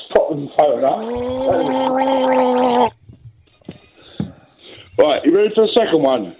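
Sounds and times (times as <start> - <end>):
speech: 0.3 - 3.0, 5.0 - 6.3
person gargling: 1.0 - 3.0.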